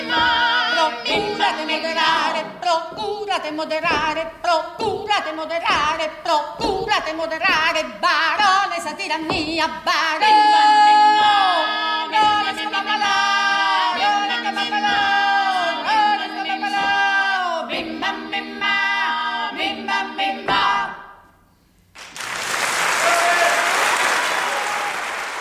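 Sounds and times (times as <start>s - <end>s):
several voices singing in sustained harmony: 0.0s - 21.3s
speech: 0.9s - 11.4s
audience applause after a vocal performance: 22.0s - 25.3s.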